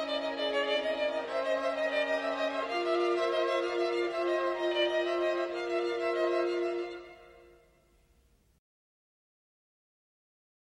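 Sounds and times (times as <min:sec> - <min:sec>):
string quartet: 0:00.0 - 0:07.7.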